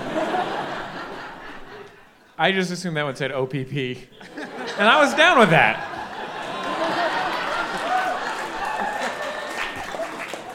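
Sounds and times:
laughter: 0.0s - 2.1s, 4.1s - 10.5s
speech: 2.4s - 5.9s
audience clapping: 4.9s - 10.5s.

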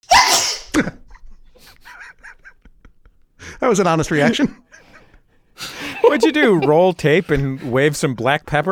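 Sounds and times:
sneeze: 0.0s - 0.9s
speech: 0.8s - 1.0s, 3.7s - 4.6s, 6.1s - 8.7s
laughter: 0.8s - 8.0s.

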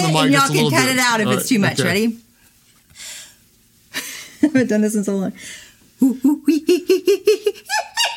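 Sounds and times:
speech: 0.1s - 2.2s, 4.4s - 7.9s
human voice imitating a monkey: 6.0s - 6.9s.

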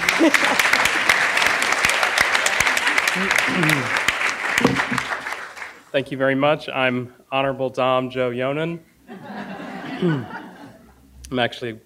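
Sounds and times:
laughter: 0.0s - 5.2s, 9.1s - 11.0s
audience applause: 0.0s - 5.8s
speech: 0.2s - 0.8s, 3.2s - 4.0s, 4.6s - 5.2s, 5.9s - 9.4s, 10.0s - 10.4s, 11.3s - 11.8s.

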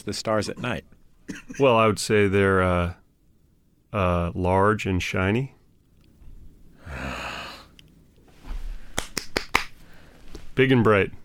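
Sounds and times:
speech: 0.0s - 3.0s, 3.9s - 5.6s, 10.6s - 11.2s
rhythmic hand clapping: 8.9s - 9.8s.

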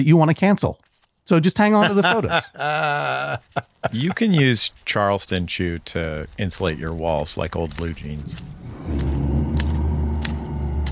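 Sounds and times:
speech: 0.0s - 9.1s
creepy mushy footsteps: 0.8s - 10.9s
laughter: 1.6s - 5.0s
moans: 7.8s - 10.9s.

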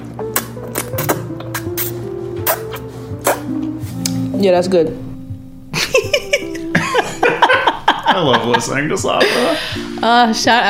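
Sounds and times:
person slurping a bowl of ramen: 0.8s - 3.4s
speech: 4.4s - 5.1s, 8.2s - 10.6s
laughter: 5.8s - 9.8s.

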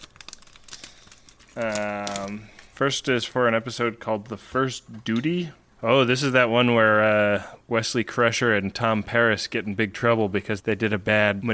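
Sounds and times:
trading card pack wrapper crinkling and tearing: 0.0s - 2.9s
speech: 1.6s - 11.5s.

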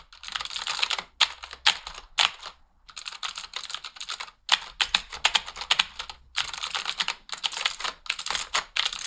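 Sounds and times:
frantic fast clattering on a computer keyboard: 0.2s - 9.0s.

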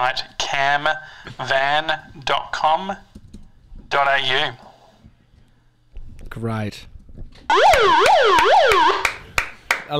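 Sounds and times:
speech: 0.0s - 3.1s, 3.9s - 4.6s, 6.3s - 9.2s
alarm at full volume: 7.5s - 9.2s.

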